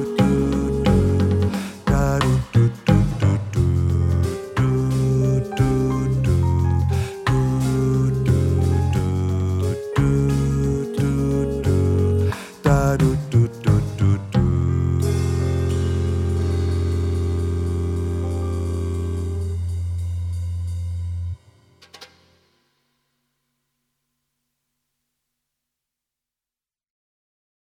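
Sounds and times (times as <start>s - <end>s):
bass: 0.0s - 22.2s.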